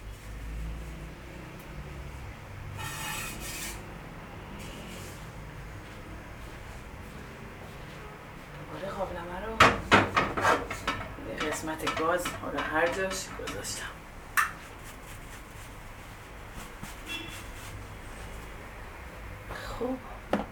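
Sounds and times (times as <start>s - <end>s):
kitchen noise: 0.0s - 19.3s
hot pot emptied into a basket strainer clanking: 9.6s - 14.0s
speech: 11.7s - 14.0s.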